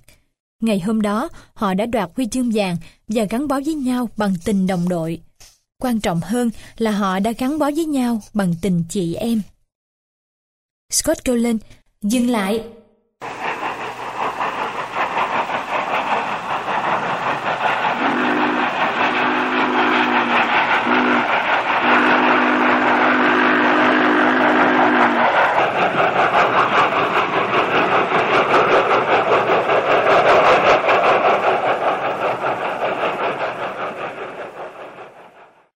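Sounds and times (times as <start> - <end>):
speech: 0.6 - 9.5, 10.9 - 13.3
train slowly rolling: 13.2 - 35.7.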